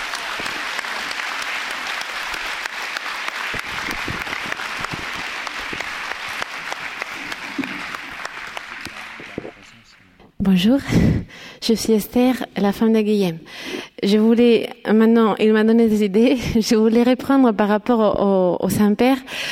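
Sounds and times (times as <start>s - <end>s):
audience applause: 0.0s - 10.1s
speech: 10.5s - 19.5s.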